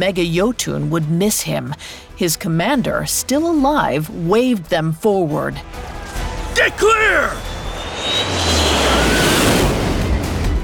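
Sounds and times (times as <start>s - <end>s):
speech: 0.0s - 5.9s, 6.6s - 8.6s
high-pitched screech of fast jets: 6.4s - 9.9s.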